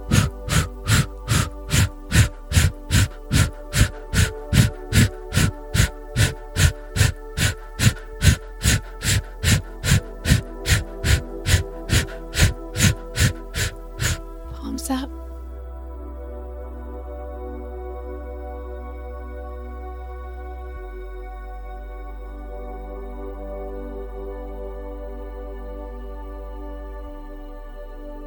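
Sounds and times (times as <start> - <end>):
deep forceful breathing in through the nose and pressed out: 0.0 - 14.6
sustained musical drone: 0.0 - 28.2.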